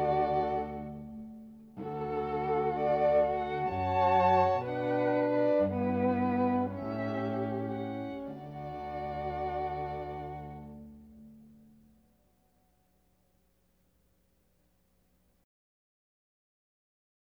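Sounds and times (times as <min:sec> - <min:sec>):
string quartet: 0:00.0 - 0:11.8.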